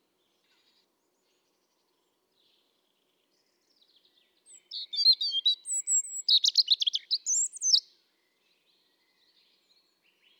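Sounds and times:
European robin singing: 0:04.5 - 0:07.9.

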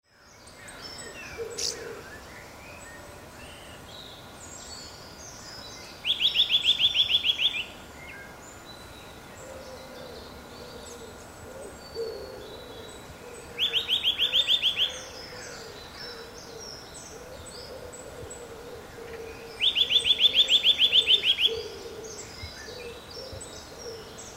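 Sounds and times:
Eurasian nuthatch Sitta europaea calling: 0:05.4 - 0:07.8, 0:13.3 - 0:24.3.

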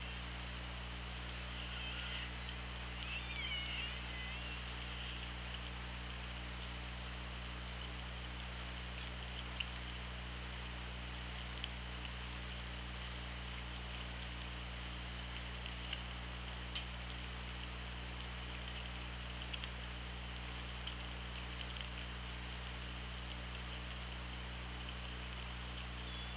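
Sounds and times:
constant hiss: 0:00.0 - 0:26.3
low electrical hum: 0:00.0 - 0:26.3
killer whale whistled calls: 0:01.5 - 0:02.4, 0:03.0 - 0:05.2.

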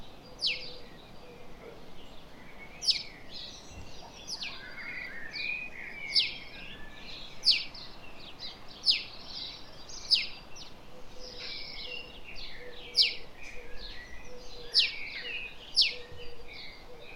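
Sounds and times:
house sparrow Passer domesticus chirping: 0:00.0 - 0:17.1.

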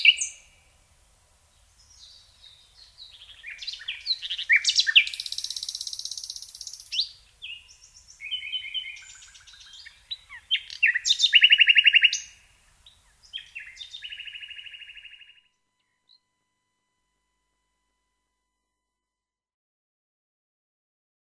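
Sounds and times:
common nightingale singing: 0:00.0 - 0:00.7, 0:01.5 - 0:16.3.

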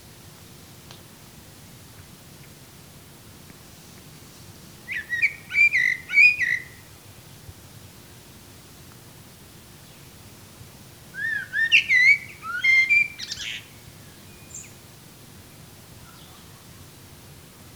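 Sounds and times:
Eurasian blackbird fluting whistles: 0:04.9 - 0:06.8, 0:11.2 - 0:13.7.

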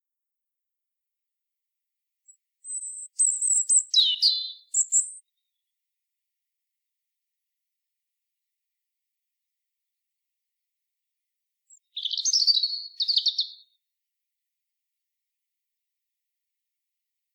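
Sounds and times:
European robin song: 0:02.2 - 0:05.7, 0:11.7 - 0:13.8.

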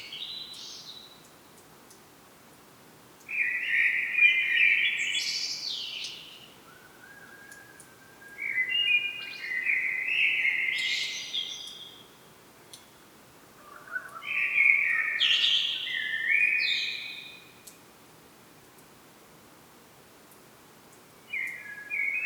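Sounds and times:
common blackbird song: 0:03.3 - 0:12.1, 0:13.6 - 0:17.8, 0:21.3 - 0:22.2.

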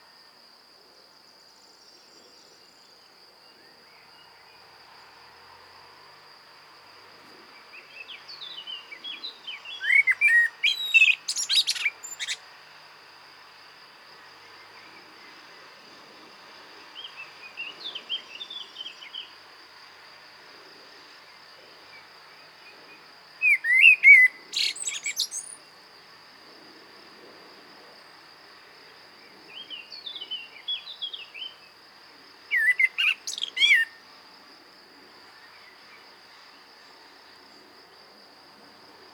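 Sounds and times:
constant shrill insect hum: 0:00.0 - 0:39.1
Common blackbird singing: 0:08.2 - 0:12.4, 0:23.4 - 0:25.6, 0:32.5 - 0:33.9.

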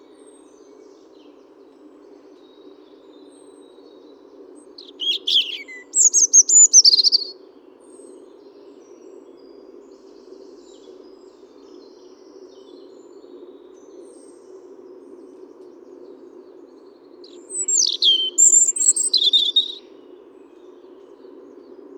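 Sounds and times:
European robin Erithacus rubecula singing: 0:04.8 - 0:07.4, 0:17.3 - 0:19.9.

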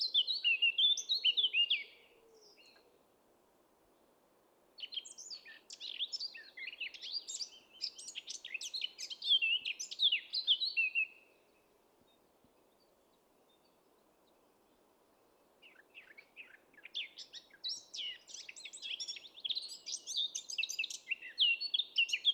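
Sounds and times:
Eurasian blackcap singing: 0:00.0 - 0:01.9, 0:04.8 - 0:11.1, 0:15.7 - 0:22.3.

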